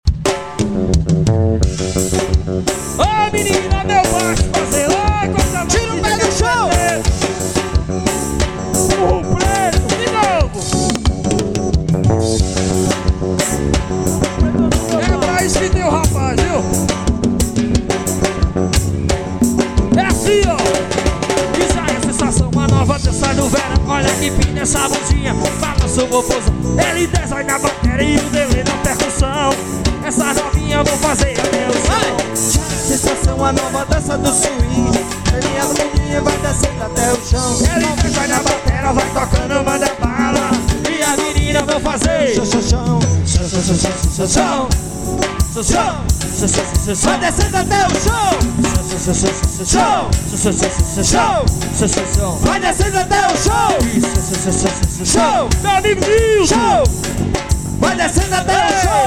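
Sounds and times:
forro swing music: 0:00.0 - 0:59.0.

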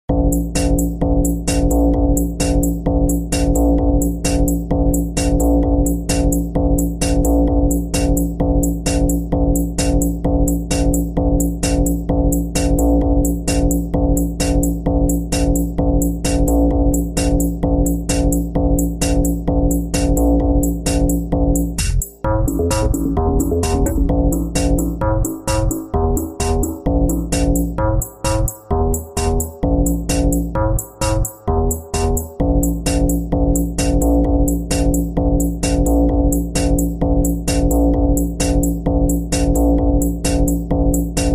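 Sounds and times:
super bass Pancadão funk music: 0:00.1 - 0:41.3.

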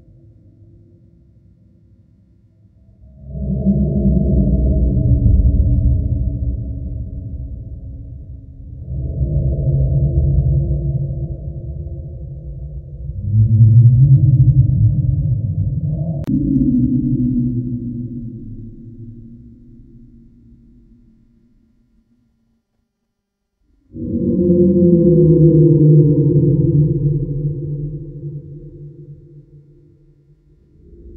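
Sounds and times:
halloween horror ambience: 0:02.7 - 0:21.7, 0:23.9 - 0:31.1.

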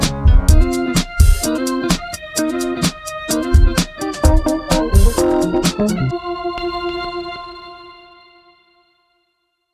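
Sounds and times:
funky dance groove: 0:00.0 - 0:06.1.

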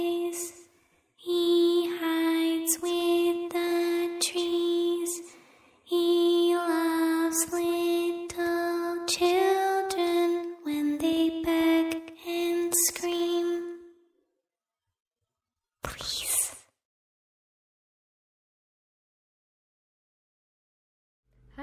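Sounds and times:
creepy little girl singing horror sound: 0:00.0 - 0:00.6, 0:01.2 - 0:05.3, 0:05.9 - 0:13.9, 0:15.8 - 0:16.6.

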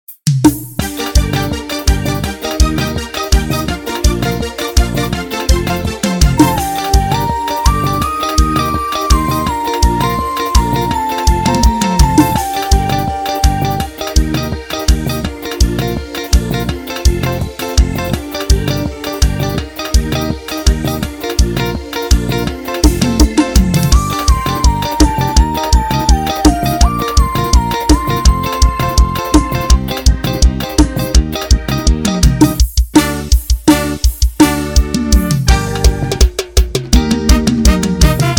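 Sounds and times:
karaoke backing track: 0:00.8 - 0:38.3.

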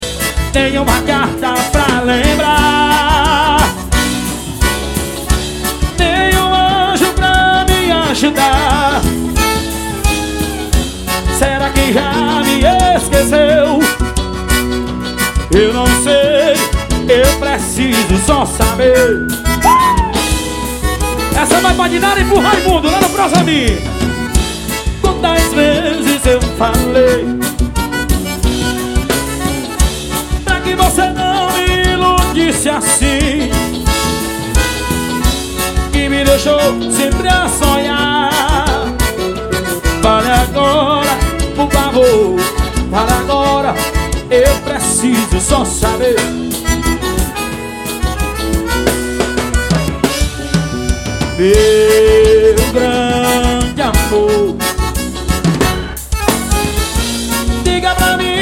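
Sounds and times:
forró dance music: 0:00.0 - 0:58.4.

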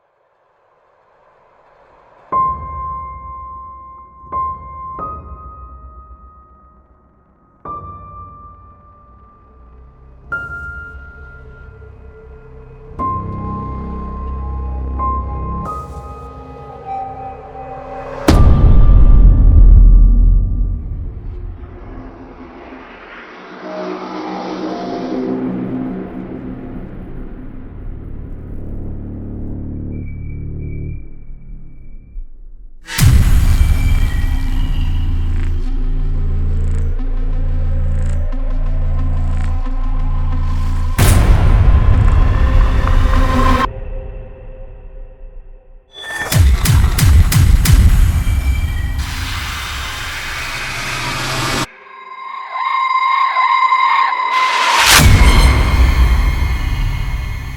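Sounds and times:
epic horror sound design: 0:12.0 - 0:57.5.

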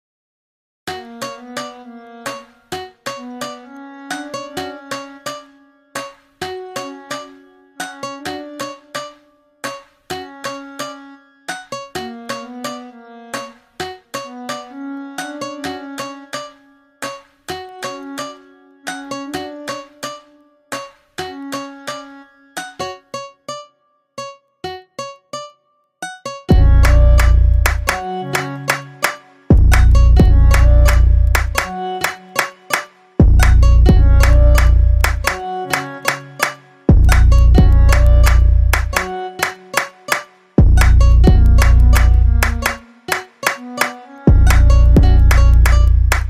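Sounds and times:
funk beat: 0:26.5 - 0:46.2.

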